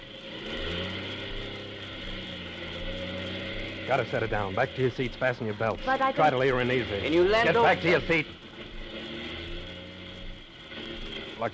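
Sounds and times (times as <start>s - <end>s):
aircraft engines running rough and failing in flight: 0.0s - 11.5s
speech: 3.9s - 8.4s.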